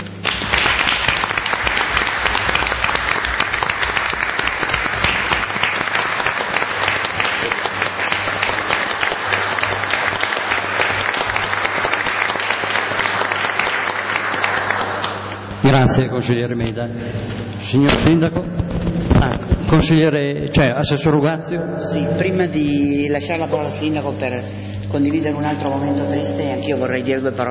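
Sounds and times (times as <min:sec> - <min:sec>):
crowd applause: 0:00.0 - 0:15.6
speech: 0:15.7 - 0:27.4.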